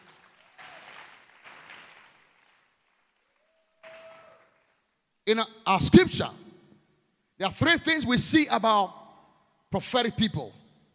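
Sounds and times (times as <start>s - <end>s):
audience clapping: 0.0s - 4.8s
speech: 5.3s - 6.4s, 7.4s - 9.0s, 9.7s - 10.6s.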